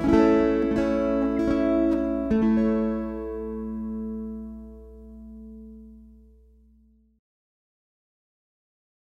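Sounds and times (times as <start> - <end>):
waltz music: 0.0 - 6.3.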